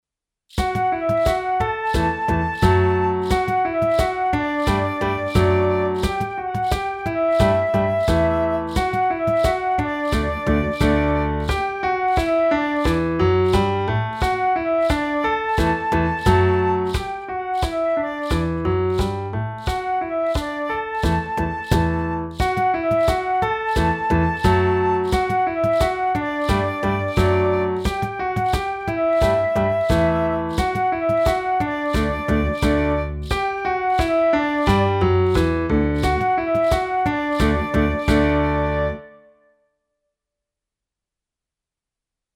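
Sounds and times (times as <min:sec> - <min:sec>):
happy dance music: 0:00.6 - 0:39.0.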